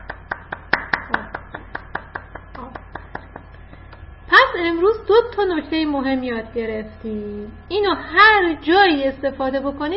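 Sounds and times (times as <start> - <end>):
children clapping for themselves: 0.0 - 4.0
speech: 4.6 - 9.9.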